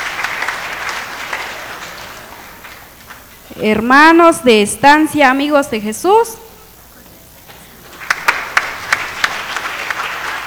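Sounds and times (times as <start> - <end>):
applause: 0.0 - 3.2, 7.8 - 10.4
speech: 3.6 - 6.4.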